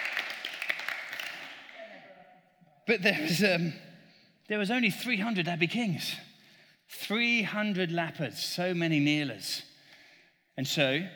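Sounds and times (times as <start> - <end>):
round of applause: 0.0 - 1.9
speech: 2.9 - 3.9, 4.5 - 6.3, 6.9 - 9.7, 10.6 - 11.1.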